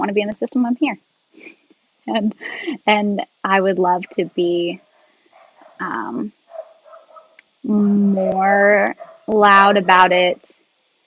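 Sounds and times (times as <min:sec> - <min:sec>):
speech: 0:00.0 - 0:04.8, 0:05.8 - 0:06.4, 0:07.6 - 0:10.6
dogs barking at a home delivery of chicken: 0:04.8 - 0:05.8, 0:06.5 - 0:07.4, 0:08.9 - 0:10.1.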